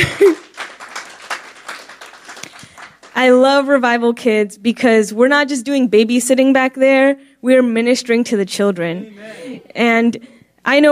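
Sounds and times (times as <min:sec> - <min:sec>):
speech: 0:00.0 - 0:00.4, 0:03.2 - 0:10.9
audience clapping: 0:00.0 - 0:03.4.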